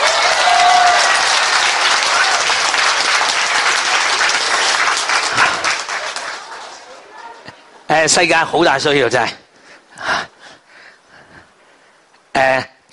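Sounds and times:
crowd applause: 0.0 - 7.7
speech: 8.0 - 9.4, 12.5 - 12.9.

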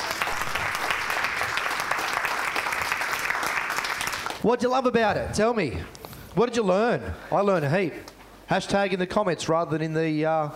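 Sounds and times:
audience applause: 0.0 - 4.4
speech: 4.4 - 10.5.

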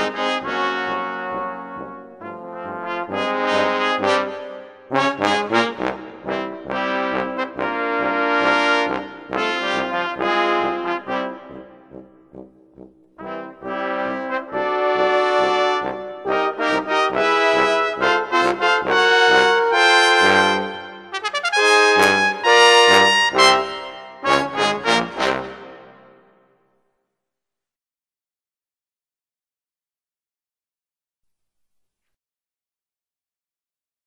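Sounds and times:
fanfare: 0.0 - 12.0, 13.2 - 26.2.

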